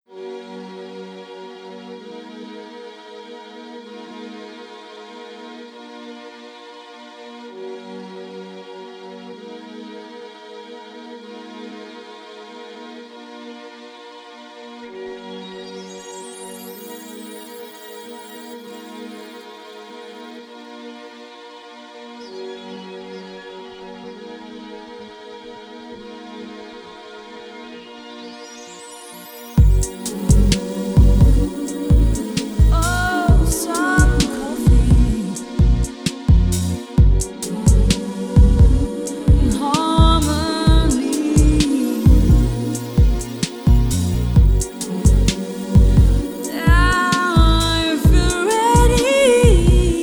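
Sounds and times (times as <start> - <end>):
chill vocals at 432 Hz: 29.6 - 50.0.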